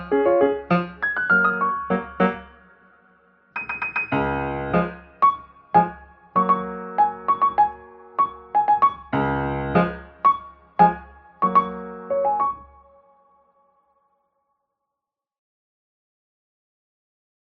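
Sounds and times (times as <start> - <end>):
piano cover: 0.0 - 13.1.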